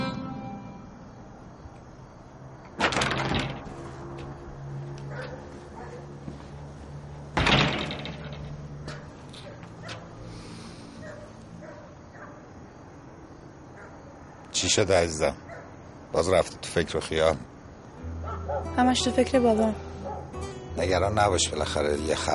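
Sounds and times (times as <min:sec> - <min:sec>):
door being shut with a loud thud: 0:02.8 - 0:03.8, 0:07.4 - 0:08.6
speech: 0:14.6 - 0:15.4, 0:16.2 - 0:17.5, 0:18.8 - 0:19.8, 0:20.8 - 0:22.3.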